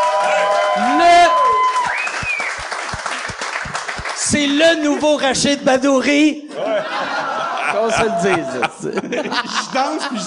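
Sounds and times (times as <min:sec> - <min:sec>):
whoops and shouted voices: 0:00.0 - 0:02.5
crowd clapping: 0:00.0 - 0:05.2
speech: 0:04.3 - 0:10.2
laughter: 0:06.5 - 0:10.2.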